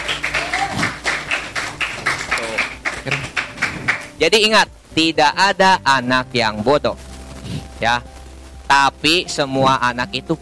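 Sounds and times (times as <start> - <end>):
applause: 0.0 - 4.2
speech: 3.1 - 3.3, 4.2 - 7.0, 7.8 - 8.1, 8.7 - 10.4.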